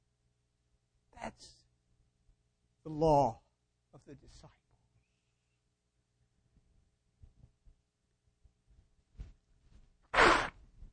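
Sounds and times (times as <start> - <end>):
speech: 2.8 - 4.6
person blowing nose: 10.1 - 10.6.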